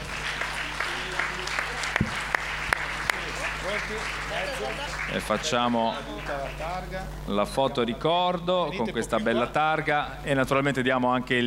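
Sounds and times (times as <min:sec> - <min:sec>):
audience applause: 0:00.0 - 0:07.0
speech: 0:03.7 - 0:11.4.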